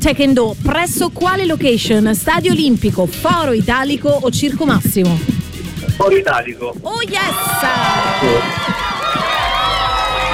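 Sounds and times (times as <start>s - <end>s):
speech: 0.0s - 8.9s
audience applause and cheering: 7.2s - 10.3s.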